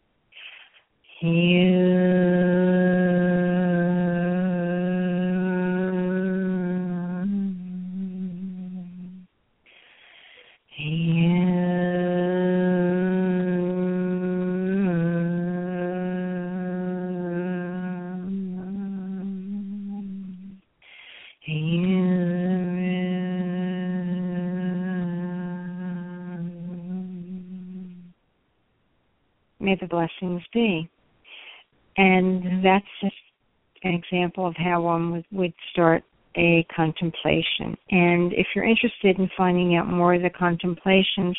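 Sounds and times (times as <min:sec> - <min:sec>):
chant sung aloud: 0:01.1 - 0:09.3, 0:10.8 - 0:20.6, 0:21.2 - 0:28.1
speech: 0:01.2 - 0:02.3, 0:29.7 - 0:31.0, 0:32.0 - 0:33.2, 0:33.8 - 0:41.3.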